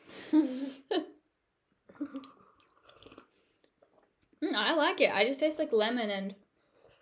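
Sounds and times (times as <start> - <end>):
slurping tea: 2.4 - 4.1, 6.7 - 7.0
speech: 4.8 - 6.4.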